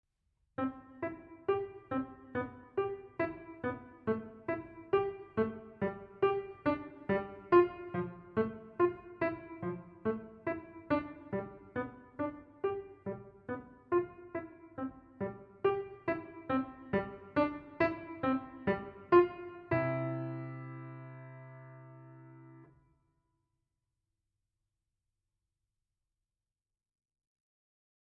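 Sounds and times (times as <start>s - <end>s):
piano: 0.6s - 22.8s.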